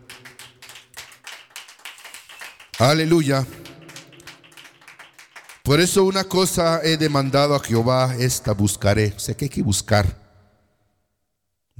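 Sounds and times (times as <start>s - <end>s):
church congregation clapping along to praise the Lord: 0.0s - 8.9s
speech: 2.8s - 3.7s, 5.7s - 10.2s.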